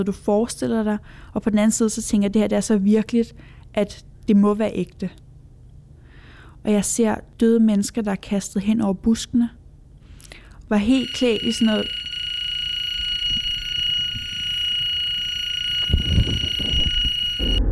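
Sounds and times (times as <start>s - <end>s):
speech: 0.0s - 5.2s, 6.6s - 9.6s, 10.7s - 12.0s
fire alarm ringing: 10.7s - 17.6s.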